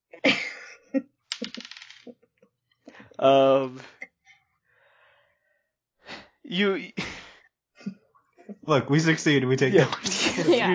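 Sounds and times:
dice rattling: 1.3s - 2.1s
speech: 3.2s - 3.9s, 6.5s - 7.1s, 8.7s - 10.7s.

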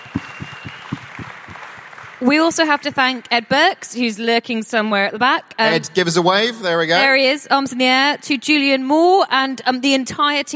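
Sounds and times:
audience applause: 0.0s - 2.8s
speech: 2.2s - 10.5s.

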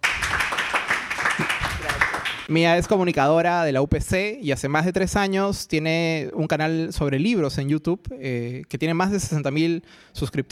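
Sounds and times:
audience applause: 0.0s - 2.5s
speech: 2.5s - 10.5s.

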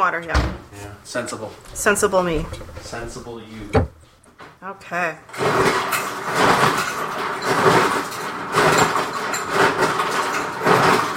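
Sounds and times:
speech: 0.0s - 3.9s, 4.6s - 6.4s
ice being crushed for cocktails: 5.4s - 11.1s.

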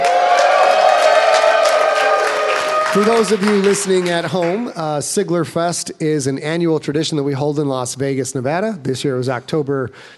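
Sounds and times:
live studio audience at Sigler Fest 2017 in Las Vegas cheering and whooping: 0.0s - 4.8s
speech: 2.9s - 10.1s.

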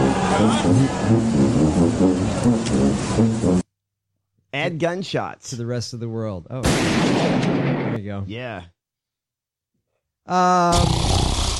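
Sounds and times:
speech: 0.4s - 3.7s, 4.5s - 8.8s, 10.3s - 11.2s
snore: 10.7s - 11.5s.

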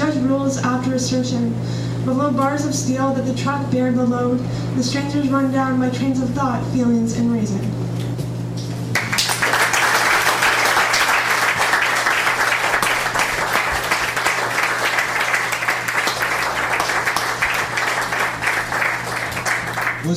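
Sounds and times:
speech: 0.3s - 7.8s
audience applause: 8.9s - 20.1s.

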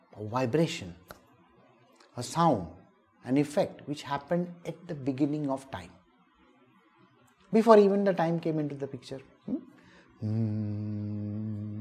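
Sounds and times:
speech: 0.2s - 1.1s, 2.2s - 6.0s, 7.5s - 9.6s, 10.2s - 11.4s
human voice humming a low steady tone: 10.2s - 11.8s.

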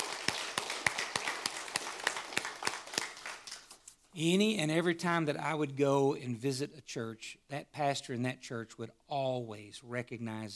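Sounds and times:
audience applause: 0.0s - 3.8s
speech: 4.2s - 10.5s.

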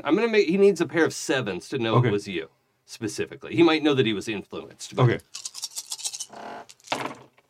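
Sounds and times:
speech: 0.0s - 5.4s
dice clattering and rolling: 5.2s - 7.4s.

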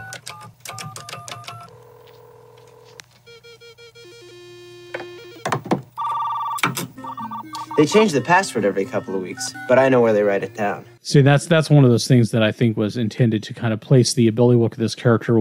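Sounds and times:
computer dial-up modem connecting: 0.0s - 11.0s
speech: 7.8s - 15.3s.

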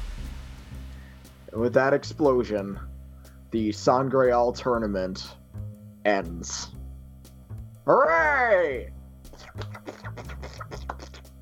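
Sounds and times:
speech: 1.5s - 2.9s, 3.5s - 6.8s, 7.9s - 9.0s
hands clapping: 9.4s - 11.3s.

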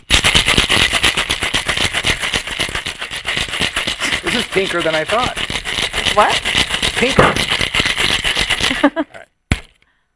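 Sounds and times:
ice cubes shaken in cocktail shaker: 0.0s - 9.2s
speech: 4.5s - 5.4s, 6.1s - 7.6s, 8.7s - 9.2s.

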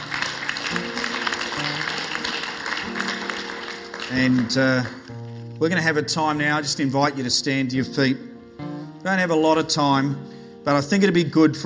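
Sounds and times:
round of applause: 0.0s - 5.1s
speech: 4.1s - 5.0s, 5.6s - 8.3s, 9.0s - 11.6s.

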